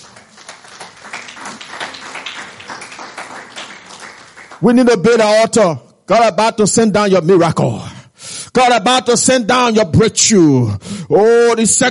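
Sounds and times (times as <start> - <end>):
audience clapping hands: 0.0 - 5.2
speech: 4.6 - 7.9, 8.6 - 11.8.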